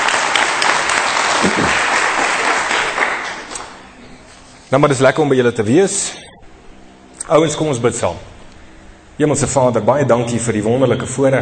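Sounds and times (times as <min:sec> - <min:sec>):
audience applauding: 0:00.0 - 0:03.8
speech: 0:04.7 - 0:06.2, 0:07.3 - 0:08.3, 0:09.2 - 0:11.4.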